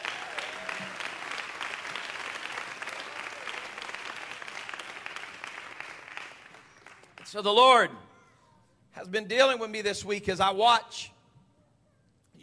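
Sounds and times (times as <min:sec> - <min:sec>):
audience applauding: 0:00.0 - 0:07.4
speech: 0:07.3 - 0:08.0, 0:09.0 - 0:11.1.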